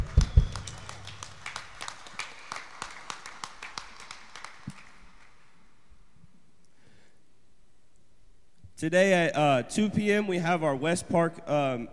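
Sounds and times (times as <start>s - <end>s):
heavy low thumps: 0.0s - 1.3s
sparse uneven audience clapping: 0.0s - 5.6s
speech: 8.8s - 11.9s.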